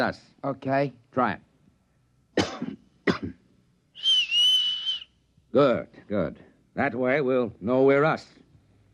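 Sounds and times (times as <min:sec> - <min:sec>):
speech: 0:00.0 - 0:01.5, 0:05.5 - 0:08.4
person coughing: 0:02.4 - 0:03.4
person whistling: 0:04.0 - 0:05.2.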